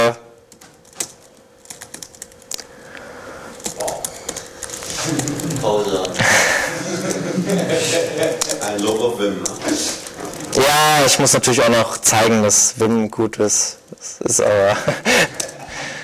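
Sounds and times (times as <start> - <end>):
keyboard typing while writing a small C program: 0.5 - 2.7, 3.5 - 6.2, 8.2 - 12.1
laughter: 5.0 - 8.8, 14.5 - 16.0
speech: 11.1 - 15.4.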